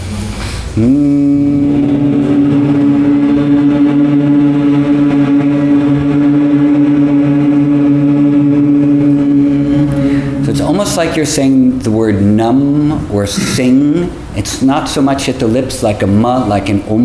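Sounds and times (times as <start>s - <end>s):
speech: 0.8s - 1.8s, 11.2s - 17.0s
person humming like a bee in bee breath: 0.8s - 10.8s.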